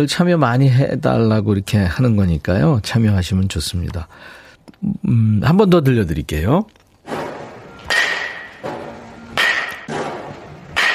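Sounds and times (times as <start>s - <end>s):
speech: 0.0s - 6.8s
batting machine hitting balls: 7.0s - 10.9s.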